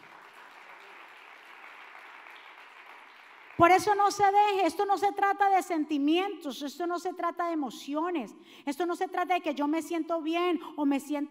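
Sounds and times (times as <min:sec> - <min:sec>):
audience applause: 0:00.0 - 0:03.6
speech: 0:03.6 - 0:11.2.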